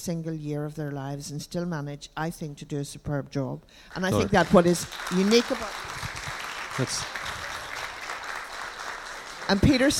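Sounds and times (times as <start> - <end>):
speech: 0.0 - 6.2, 6.8 - 7.3, 9.5 - 9.9
audience applause: 4.1 - 9.9.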